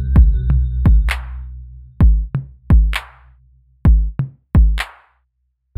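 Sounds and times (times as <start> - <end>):
rap beat: 0.0 - 1.4, 2.0 - 3.2, 3.9 - 5.0.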